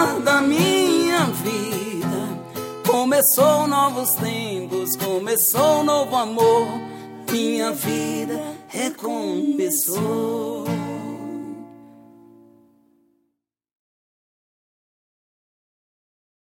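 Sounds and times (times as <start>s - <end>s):
romantic sertanejo music: 0.0s - 13.0s.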